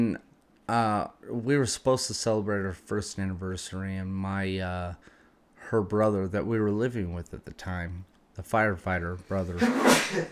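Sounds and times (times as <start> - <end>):
speech: 0.0 - 10.2
person sneezing: 9.6 - 10.2.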